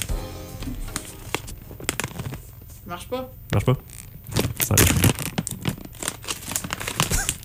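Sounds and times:
plastic bag being opened and twisted: 0.9s - 2.8s, 3.8s - 7.4s
people talking: 2.8s - 3.8s.

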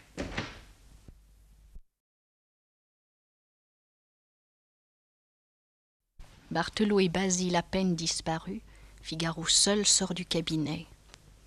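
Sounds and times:
street door being pulled shut: 0.2s - 0.7s
speech: 6.5s - 10.9s.

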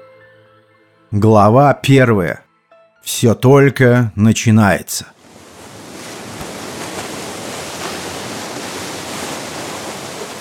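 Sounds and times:
speech: 1.1s - 2.4s, 3.0s - 5.2s
paddle wheel blades slapping water: 5.2s - 10.3s.

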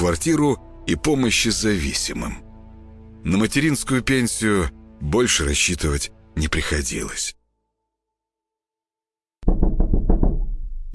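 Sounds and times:
speech: 0.1s - 2.4s, 3.2s - 7.4s
insistent knocking on a door: 9.4s - 10.9s.

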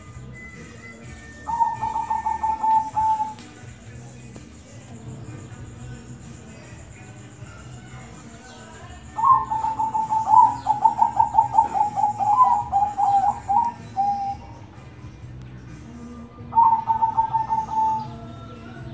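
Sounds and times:
zebra dove cooing: 0.0s - 3.9s, 7.6s - 18.9s.

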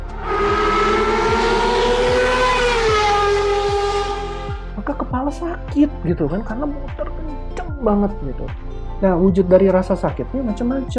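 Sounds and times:
engine revving at high speed: 0.0s - 4.8s
speech: 5.2s - 10.9s.

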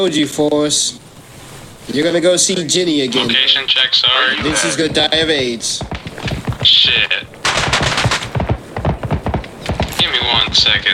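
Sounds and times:
speech: 0.0s - 1.1s, 1.9s - 5.9s, 6.6s - 7.4s, 10.5s - 10.9s
distant gunfire: 4.3s - 10.9s.

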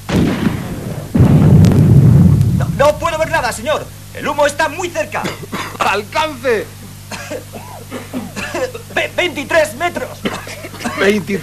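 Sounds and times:
artillery guns firing in a Spanish radio drama of The War of the Worlds: 0.0s - 4.0s
speech: 3.4s - 11.4s
laughter: 6.8s - 11.4s.

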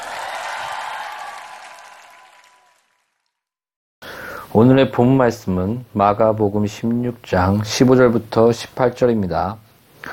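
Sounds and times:
audience applauding: 0.0s - 3.3s
speech: 4.6s - 9.6s.

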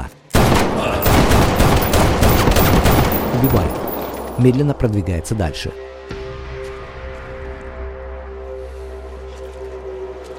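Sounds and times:
rapid gunfire in a film scene: 0.4s - 4.4s
speech: 4.4s - 5.9s.

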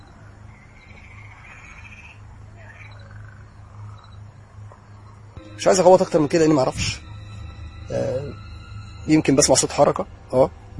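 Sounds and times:
frogs croaking: 0.0s - 5.4s
speech: 5.6s - 7.1s, 9.1s - 10.7s.

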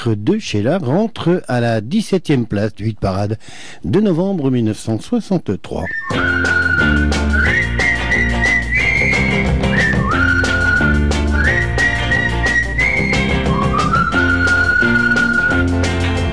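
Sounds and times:
speech: 0.0s - 6.7s
whistled tune: 5.8s - 16.2s.

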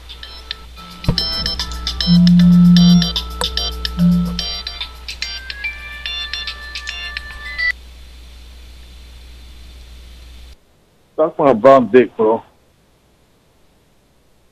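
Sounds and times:
electronic telephone buzzing ring during a prank call: 0.9s - 4.8s
speech: 2.1s - 2.6s, 11.2s - 12.5s.

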